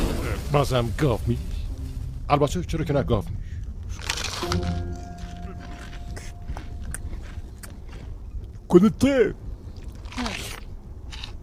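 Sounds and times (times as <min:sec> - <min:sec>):
speech: 0:00.5 - 0:01.5, 0:02.3 - 0:04.7, 0:08.7 - 0:09.4
person chewing crunchy food: 0:04.0 - 0:08.6, 0:09.7 - 0:11.4.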